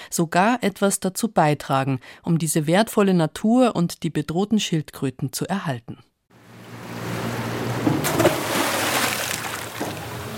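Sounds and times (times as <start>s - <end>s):
speech: 0.1s - 6.1s
anchor splashing into shallow water off a sandy beach: 7.1s - 10.3s.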